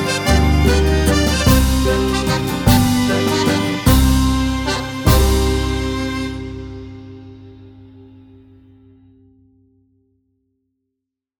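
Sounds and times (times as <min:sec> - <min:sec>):
musette waltz: 0:00.0 - 0:07.4.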